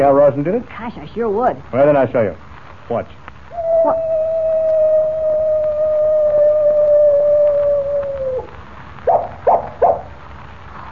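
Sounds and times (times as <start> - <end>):
speech: 0.0 - 3.2
coyote howling: 3.5 - 10.1.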